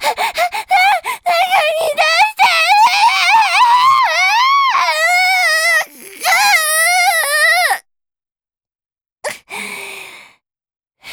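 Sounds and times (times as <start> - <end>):
person screaming: 0.0 - 7.8.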